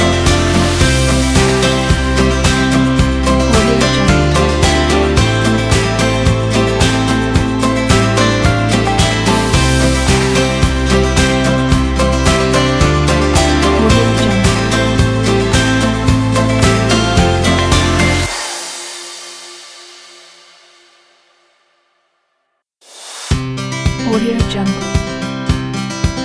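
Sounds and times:
corporate acoustic guitar music: 0.0s - 19.6s, 23.3s - 26.2s.

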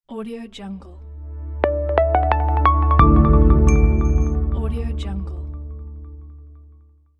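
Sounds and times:
minimal happy logo jingle: 1.6s - 5.2s.

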